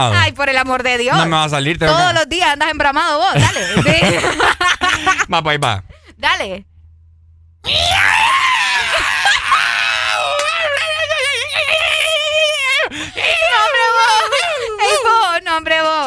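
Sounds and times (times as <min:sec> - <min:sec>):
speech: 0:00.0 - 0:06.7, 0:07.6 - 0:08.3
laughter: 0:03.4 - 0:05.4, 0:08.7 - 0:15.3
man imitating a yowling cat in heat: 0:07.6 - 0:10.8.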